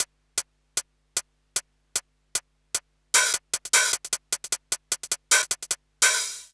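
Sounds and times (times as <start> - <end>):
hi-hat: 0.0 - 0.5, 1.6 - 6.5
drum loop: 3.2 - 6.5.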